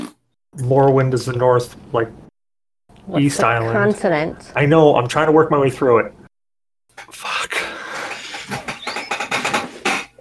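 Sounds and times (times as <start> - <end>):
speech: 0.6 - 2.2, 3.1 - 6.2
chair creaking as someone shifts their weight: 7.8 - 10.1.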